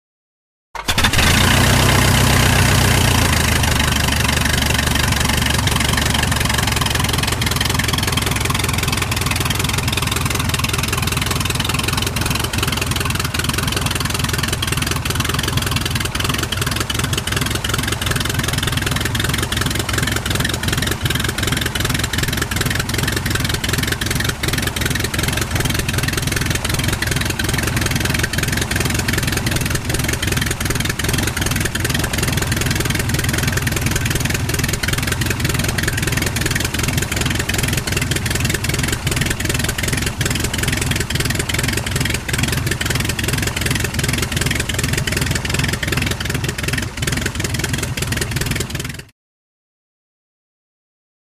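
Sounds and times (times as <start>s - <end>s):
Tiger Moth propeller aircraft engine starting up and idling: 0.8s - 49.1s.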